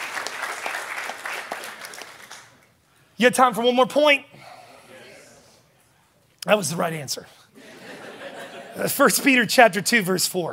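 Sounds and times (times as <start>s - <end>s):
golf clap, light polite applause from a small group: 0.0s - 2.7s
speech: 3.2s - 4.4s, 6.5s - 7.4s, 8.8s - 10.5s
laughter: 7.6s - 9.4s.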